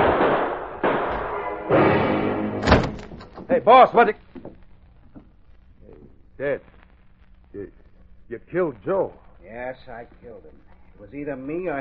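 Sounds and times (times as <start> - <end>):
gunshots: 0.0 - 3.9
speech: 3.6 - 4.3, 6.4 - 6.7, 7.6 - 11.7.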